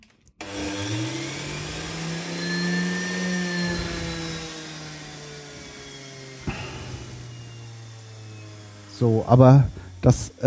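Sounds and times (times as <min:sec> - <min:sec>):
electric juicer running: 0:00.4 - 0:10.4
speech: 0:09.0 - 0:10.4.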